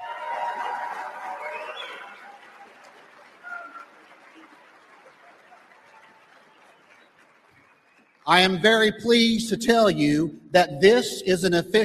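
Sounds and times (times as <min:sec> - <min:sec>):
audience applause: 0:00.0 - 0:08.9
speech: 0:08.3 - 0:11.8.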